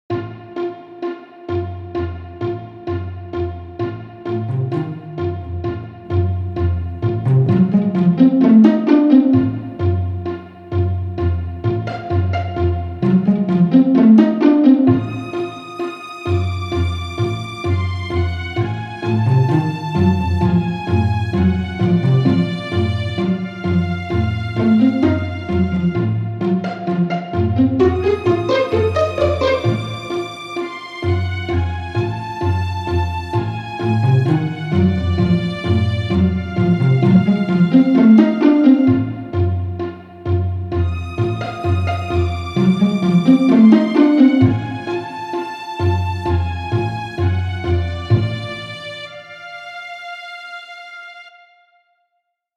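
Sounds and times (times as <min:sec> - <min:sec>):
tense soundtrack music for an audiobook: 0:00.1 - 0:50.2.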